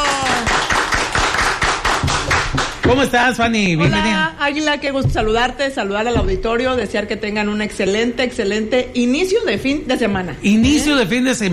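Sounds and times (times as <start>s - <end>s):
few people clapping in a radio station booth: 0.0s - 3.4s
speech: 2.9s - 11.5s.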